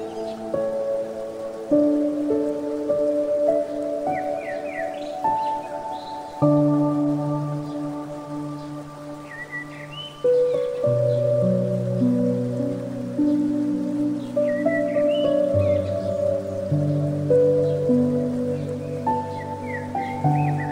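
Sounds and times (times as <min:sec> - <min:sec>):
piano: 0:00.0 - 0:20.7
bird: 0:03.6 - 0:06.7, 0:07.4 - 0:11.5, 0:13.2 - 0:20.7.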